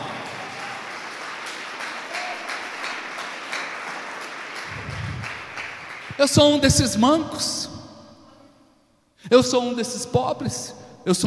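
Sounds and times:
audience applauding: 0:00.0 - 0:06.3
speech: 0:06.2 - 0:07.7, 0:09.3 - 0:11.2.

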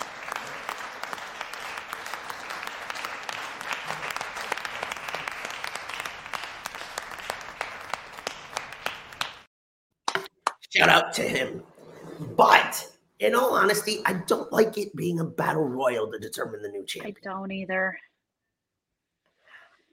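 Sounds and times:
golf clap applause: 0:00.0 - 0:09.5
speech: 0:10.8 - 0:11.7, 0:12.4 - 0:18.1.

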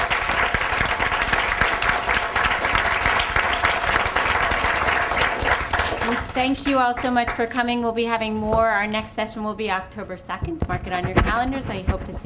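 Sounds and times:
audience applause: 0:00.0 - 0:07.4
speech: 0:06.4 - 0:12.2.

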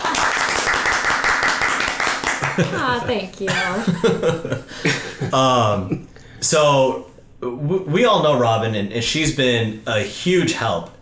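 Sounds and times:
round of applause: 0:00.0 - 0:02.9
speech: 0:02.6 - 0:10.9.

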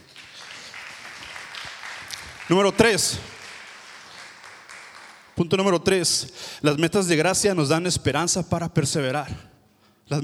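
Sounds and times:
audience applause: 0:00.0 - 0:05.4
speech: 0:02.5 - 0:03.3, 0:05.4 - 0:09.5.

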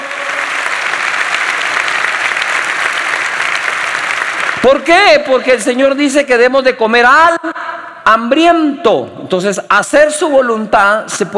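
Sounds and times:
audience applause: 0:00.0 - 0:04.8
speech: 0:04.6 - 0:11.3.

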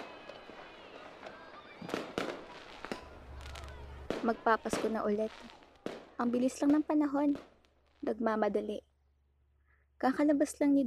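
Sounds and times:
firecrackers being set off: 0:00.0 - 0:08.2
speech: 0:04.2 - 0:05.6, 0:06.2 - 0:08.9, 0:10.0 - 0:10.8.

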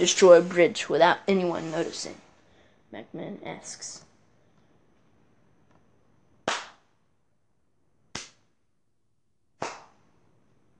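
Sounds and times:
speech: 0:00.0 - 0:02.2, 0:02.9 - 0:04.1
man clapping sharp hand claps: 0:06.4 - 0:06.8, 0:08.1 - 0:08.4, 0:09.6 - 0:10.0.

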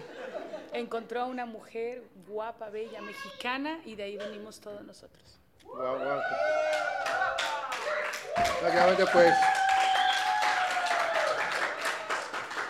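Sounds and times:
speech: 0:00.8 - 0:07.5, 0:08.4 - 0:09.6
audience clapping and applause: 0:06.4 - 0:12.6.

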